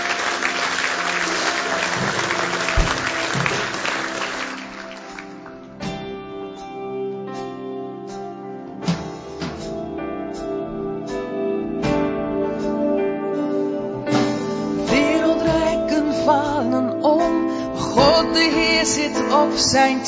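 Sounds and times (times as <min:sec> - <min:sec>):
audience applause: 0:00.0 - 0:05.8
keyboard chords and soft music: 0:00.0 - 0:20.0.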